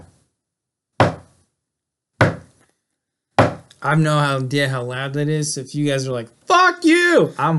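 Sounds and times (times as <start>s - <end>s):
knocking at a door: 1.0s - 1.3s, 2.2s - 2.5s, 3.4s - 3.7s
speech: 3.8s - 7.5s.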